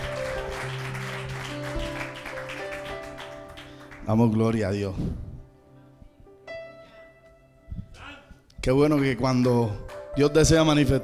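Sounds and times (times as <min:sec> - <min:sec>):
audience applauding: 0:00.0 - 0:04.4
speech: 0:04.1 - 0:05.3, 0:08.6 - 0:11.0.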